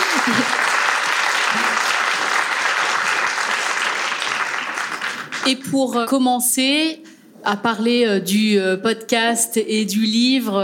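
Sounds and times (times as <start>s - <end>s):
laughter: 0.0s - 0.8s
audience applause: 0.0s - 5.5s
speech: 5.5s - 10.6s.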